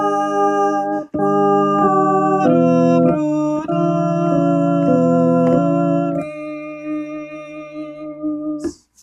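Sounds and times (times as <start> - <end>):
soprano melody: 0.0 - 8.8.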